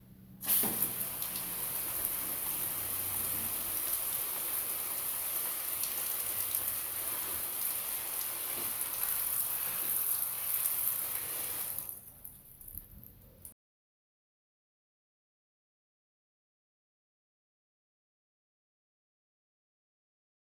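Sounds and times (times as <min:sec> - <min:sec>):
watering plants: 0:00.4 - 0:13.5.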